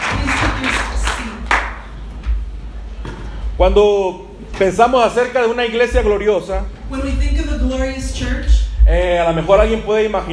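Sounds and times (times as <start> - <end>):
audience applauding: 0.0 - 2.0
speech: 3.6 - 7.1, 7.8 - 10.3.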